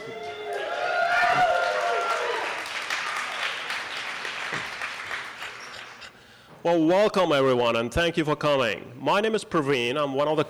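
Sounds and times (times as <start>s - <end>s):
crowd cheering and whooping: 0.0s - 4.0s
audience applause: 0.0s - 6.0s
speech: 6.6s - 10.4s.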